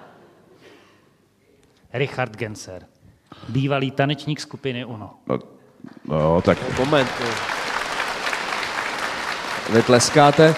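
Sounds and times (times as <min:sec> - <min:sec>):
speech: 0:01.9 - 0:05.5, 0:06.1 - 0:07.6, 0:09.7 - 0:10.5
audience applause: 0:06.2 - 0:10.5.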